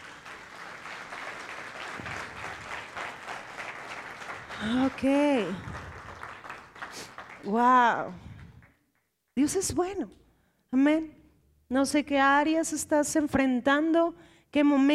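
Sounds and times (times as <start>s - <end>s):
audience applause: 0.0s - 7.6s
speech: 4.6s - 5.7s, 7.4s - 8.3s, 9.4s - 14.9s.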